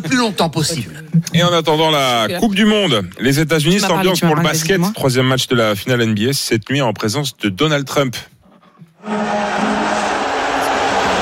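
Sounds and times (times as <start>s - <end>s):
speech: 0.0s - 8.3s
arena crowd booing and whistling at Madison Square Garden: 9.0s - 11.2s.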